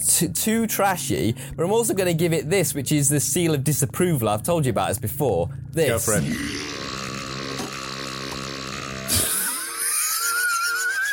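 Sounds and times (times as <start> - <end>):
speech: 0.1 - 6.8
burp: 6.1 - 10.3.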